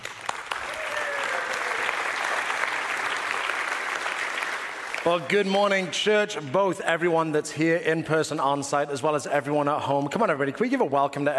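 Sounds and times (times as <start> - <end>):
church congregation applause welcoming the pastor: 0.0 - 5.9
speech: 5.0 - 11.3.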